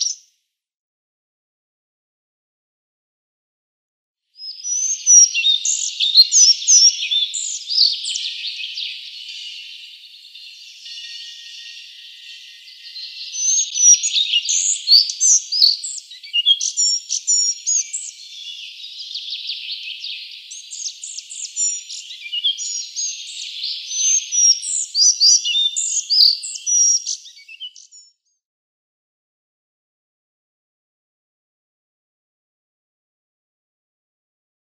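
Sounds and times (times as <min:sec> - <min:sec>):
Collared Flycatcher song: 0:00.0 - 0:00.3, 0:04.3 - 0:28.4.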